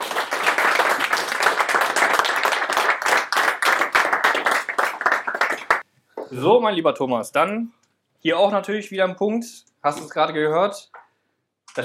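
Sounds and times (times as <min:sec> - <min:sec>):
audience applause: 0:00.0 - 0:05.8
speech: 0:06.3 - 0:11.0.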